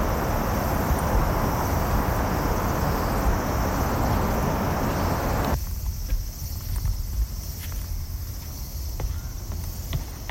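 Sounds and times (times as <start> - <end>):
dense steady rush at Odaiba Kaihin Park, Tokyo: 0.0 - 5.6
thin high hiss: 0.0 - 10.2.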